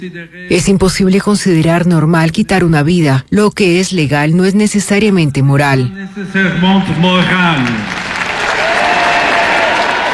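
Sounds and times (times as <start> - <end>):
speech: 0.0 - 8.0
crowd cheering: 7.0 - 10.1
applause: 7.3 - 10.1.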